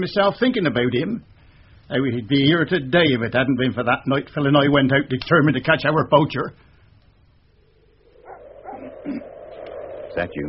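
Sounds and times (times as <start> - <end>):
speech: 0.0 - 1.3, 1.9 - 6.7, 10.2 - 10.4
dog barking: 8.2 - 9.0.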